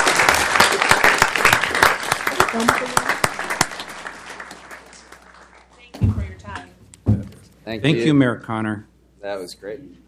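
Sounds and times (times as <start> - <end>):
audience applause at a city council meeting: 0.0 - 5.7
speech: 2.6 - 3.1, 7.7 - 10.0.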